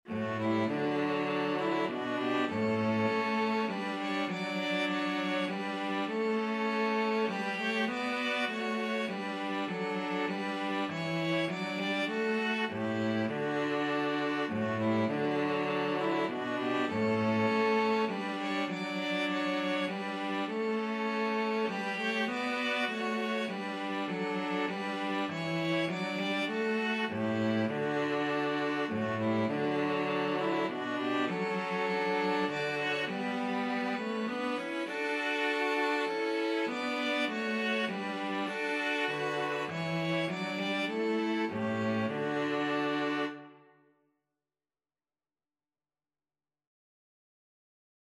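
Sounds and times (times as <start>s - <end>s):
string trio playing: 0.1s - 43.6s.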